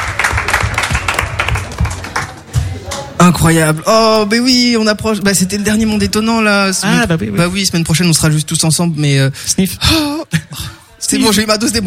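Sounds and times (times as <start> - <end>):
audience applause: 0.0 - 2.6
speech: 3.2 - 11.8.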